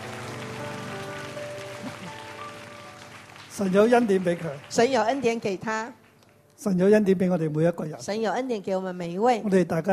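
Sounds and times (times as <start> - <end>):
audience applause: 0.0 - 5.9
speech: 3.6 - 6.0, 6.6 - 9.9.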